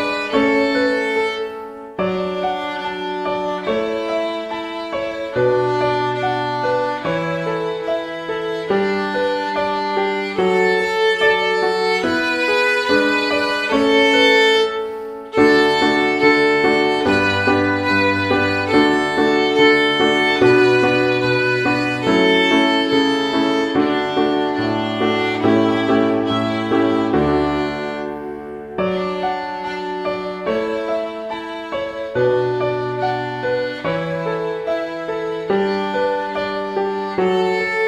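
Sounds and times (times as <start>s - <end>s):
piano: 0.0s - 37.8s
violin: 0.0s - 37.8s.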